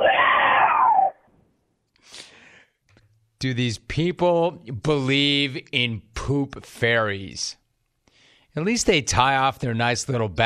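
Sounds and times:
person imitating mountain lion scream: 0.0 - 1.3
speech: 3.4 - 7.6, 8.5 - 10.4.

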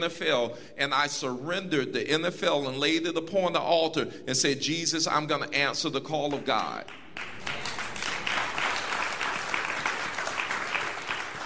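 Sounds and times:
speech: 0.0 - 7.3
audience applause: 6.9 - 11.4.

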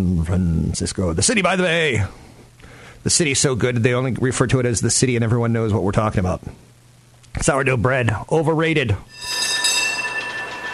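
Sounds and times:
speech: 0.0 - 2.3, 3.0 - 6.7, 7.4 - 9.5
high metallic whine from trolley car wheels: 9.1 - 10.7
trolley car rolling on rails: 9.3 - 10.7.

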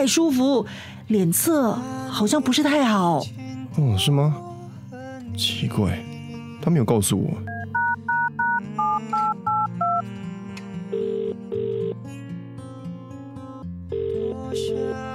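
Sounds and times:
speech: 0.0 - 4.5, 5.4 - 7.5
soft music: 0.0 - 15.1
dual-tone phone keypad dialing beeps: 7.5 - 10.0
phone ringback tones: 7.5 - 10.0, 10.9 - 12.0, 13.9 - 15.1.

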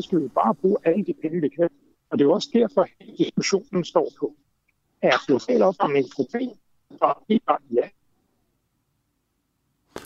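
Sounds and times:
loud burst of crackling noise: 0.0 - 4.3, 5.0 - 7.9
speech: 0.0 - 4.4, 5.0 - 8.0
faint low hum: 0.0 - 9.9.

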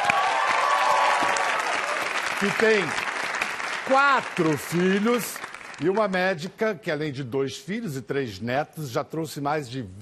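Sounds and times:
audience applause: 0.0 - 6.4
speech: 2.4 - 3.1, 3.9 - 10.0.

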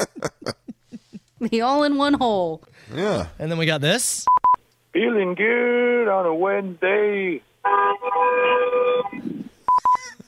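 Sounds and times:
laughter: 0.0 - 1.3
speech: 1.4 - 4.3, 5.0 - 7.8
car horn honking in traffic: 7.6 - 9.2.

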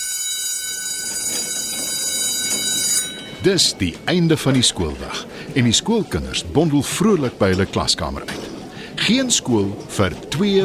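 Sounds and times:
school bell ringing: 0.0 - 4.8
speech: 3.4 - 10.6.

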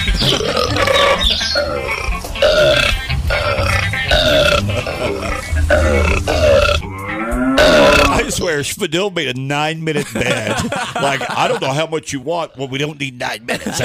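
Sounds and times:
loud gurgling burps: 0.2 - 8.4
laughter: 4.2 - 6.4, 9.9 - 12.0, 12.7 - 13.8
speech: 8.5 - 13.8.

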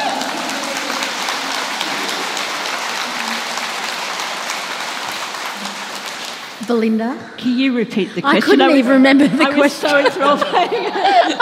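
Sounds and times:
laughter: 0.0 - 3.8, 8.2 - 11.4
audience clapping: 0.0 - 7.0
speech: 6.7 - 11.4.

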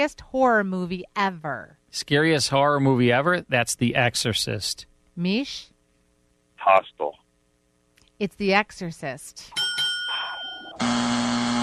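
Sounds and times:
speech: 0.0 - 5.7, 6.6 - 7.2, 8.2 - 9.6
quiz bell ding: 9.5 - 10.8.

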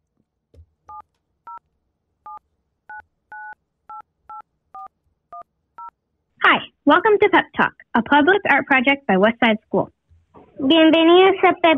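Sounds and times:
telephone number dialed on a keypad: 0.9 - 1.6, 2.2 - 6.0
speech: 6.9 - 10.0, 10.6 - 11.7.

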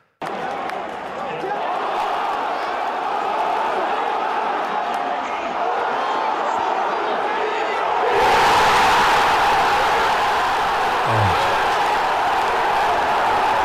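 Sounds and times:
crowd cheering euphorically at goal: 0.2 - 13.6
large crowd murmuring: 10.9 - 12.0.

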